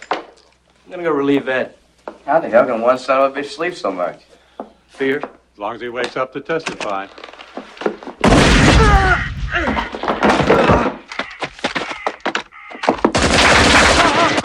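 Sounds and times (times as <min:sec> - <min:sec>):
speech: 0:00.9 - 0:04.4, 0:05.0 - 0:07.2
grenade explosion in an audio drama: 0:08.2 - 0:10.9, 0:13.1 - 0:14.4
gunfire in an audio drama: 0:13.1 - 0:14.4.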